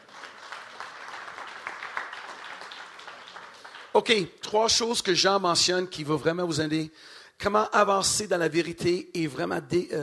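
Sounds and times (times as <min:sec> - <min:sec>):
crowd clapping: 0:00.0 - 0:04.6
speech: 0:04.0 - 0:10.0.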